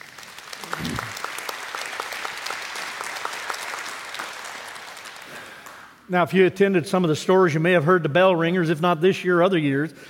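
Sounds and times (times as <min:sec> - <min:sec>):
audience applause: 0:00.0 - 0:06.0
speech: 0:06.1 - 0:10.0.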